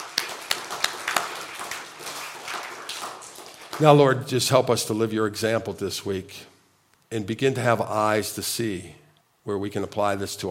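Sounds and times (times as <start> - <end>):
audience applauding: 0.0 - 4.2
speech: 3.8 - 6.5, 7.1 - 10.4.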